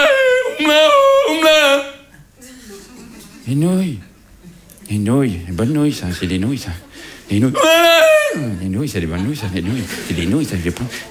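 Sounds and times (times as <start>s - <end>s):
Tyrolean yodel singing: 0.0s - 2.1s, 7.4s - 8.6s
laughter: 0.0s - 11.1s
speech: 3.5s - 4.1s, 4.9s - 11.1s.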